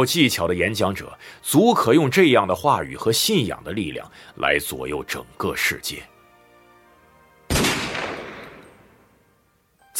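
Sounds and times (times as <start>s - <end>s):
speech: 0.0s - 6.1s
gunfire: 7.5s - 9.0s.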